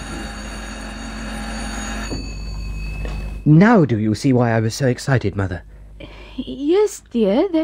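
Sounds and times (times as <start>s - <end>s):
electric bell ringing: 0.0s - 4.0s
speech: 3.4s - 7.6s.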